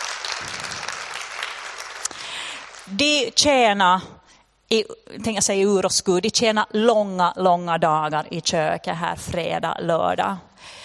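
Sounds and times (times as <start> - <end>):
audience applause: 0.0 - 2.9
speech: 2.9 - 10.8.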